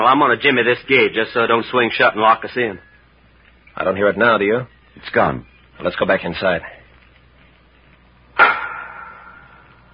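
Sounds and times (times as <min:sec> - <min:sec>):
speech: 0:00.0 - 0:02.9, 0:03.8 - 0:06.8
sharp knock from a prison chamber: 0:08.4 - 0:09.7.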